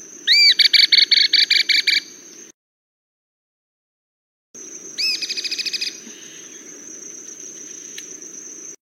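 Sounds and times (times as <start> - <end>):
cliff flycatcher calling: 0.0 - 2.5, 4.6 - 8.8.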